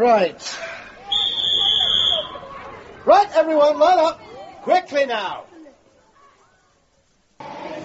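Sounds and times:
speech: 0.0s - 0.6s, 3.1s - 5.5s
whistle blown to call people in: 1.0s - 2.5s.

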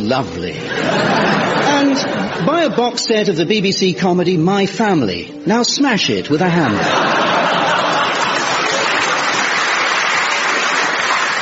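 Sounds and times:
speech: 0.1s - 7.2s
laughter: 0.6s - 3.0s, 6.6s - 11.3s
audience big cheer: 7.0s - 11.3s.

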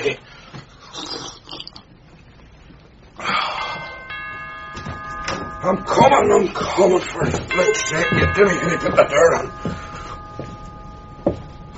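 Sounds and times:
doorbell buzzing: 3.8s - 11.7s
speech: 5.6s - 9.8s.

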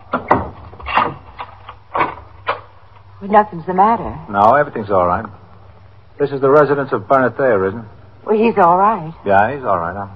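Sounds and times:
door opening: 0.0s - 2.7s
speech: 3.2s - 5.4s, 6.2s - 10.1s.

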